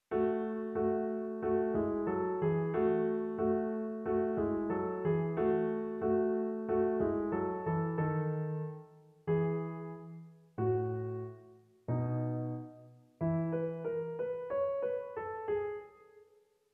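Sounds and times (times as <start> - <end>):
slow classical piece: 0.0 - 16.4.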